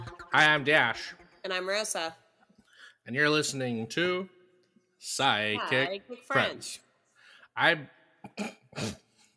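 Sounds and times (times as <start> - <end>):
speech: 0.3 - 2.2, 3.1 - 4.4, 5.0 - 6.8, 7.6 - 9.0
person burping: 8.2 - 9.0.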